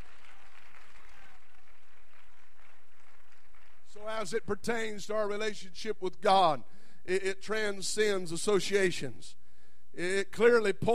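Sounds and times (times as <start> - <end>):
audience clapping in praise: 0.0 - 4.1
speech: 4.0 - 9.4, 10.0 - 10.9.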